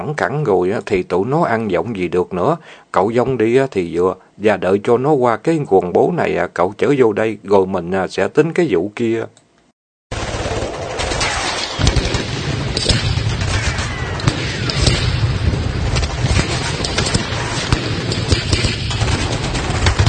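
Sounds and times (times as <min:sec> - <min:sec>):
speech: 0:00.0 - 0:09.4
machine gun warning fire sprayed over banana leaves: 0:10.1 - 0:20.0.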